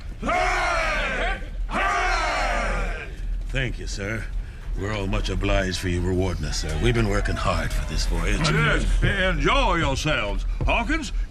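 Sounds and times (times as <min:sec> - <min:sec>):
crew cheering hooray: 0:00.2 - 0:03.2
speech: 0:03.6 - 0:11.3.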